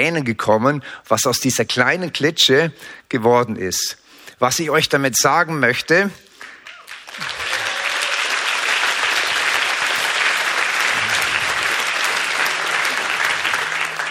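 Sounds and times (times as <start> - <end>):
speech: 0.0 - 6.3, 7.2 - 7.4
audience applause at a Christian youth gathering's morning session: 6.6 - 14.0.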